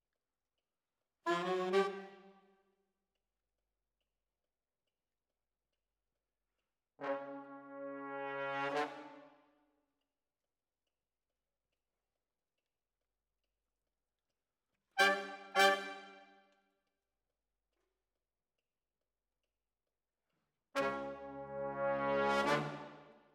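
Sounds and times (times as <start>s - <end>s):
brass instruments: 1.3s - 2.3s, 7.0s - 9.5s, 15.0s - 16.3s, 20.8s - 23.3s.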